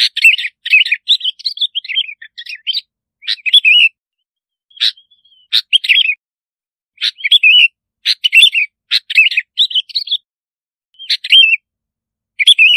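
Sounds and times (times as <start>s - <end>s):
bulbul singing: 0.0s - 4.0s, 4.7s - 6.2s, 7.0s - 10.3s, 11.0s - 11.7s, 12.3s - 12.7s.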